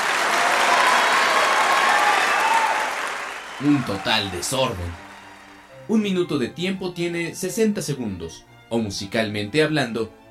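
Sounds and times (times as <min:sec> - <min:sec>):
applause: 0:00.0 - 0:06.1
speech: 0:03.6 - 0:05.0, 0:05.9 - 0:10.2.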